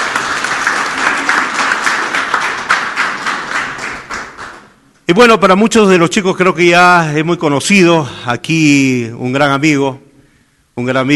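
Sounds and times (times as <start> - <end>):
audience applause: 0.0 - 4.7
speech: 5.1 - 10.0, 10.8 - 11.1.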